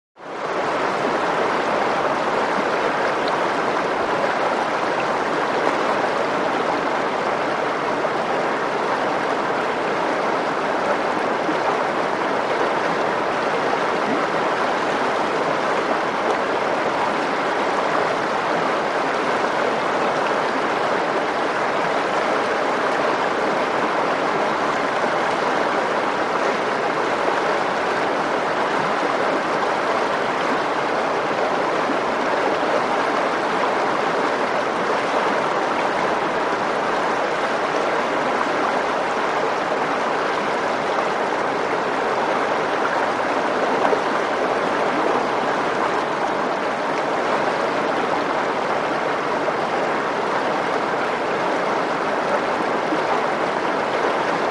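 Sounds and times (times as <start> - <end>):
medium river running medium-fast with roar: 0.2 - 54.4.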